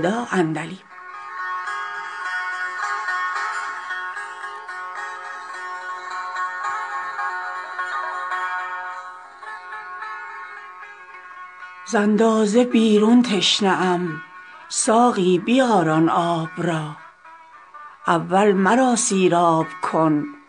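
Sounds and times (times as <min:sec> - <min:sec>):
speech: 0:00.0 - 0:00.9, 0:11.9 - 0:17.0, 0:18.1 - 0:20.4
solo setar playing plucked notes: 0:00.0 - 0:20.4.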